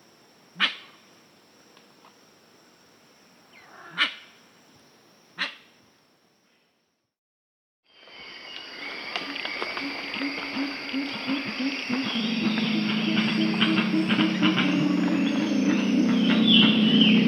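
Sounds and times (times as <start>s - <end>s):
Pale-winged Trumpeter low pulsed hoots: 8.8s - 17.2s.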